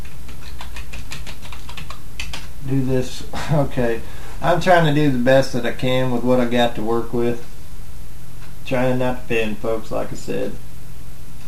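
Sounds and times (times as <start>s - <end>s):
typing on a computer keyboard: 0.0s - 2.5s
hiss: 0.0s - 11.4s
speech: 2.6s - 7.5s, 8.7s - 10.6s.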